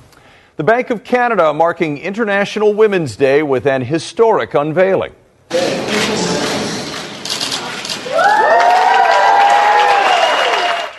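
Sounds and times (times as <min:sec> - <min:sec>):
speech: 0:00.6 - 0:06.3
crowd applause: 0:05.5 - 0:10.9
loud cheers and whoops: 0:08.0 - 0:10.9.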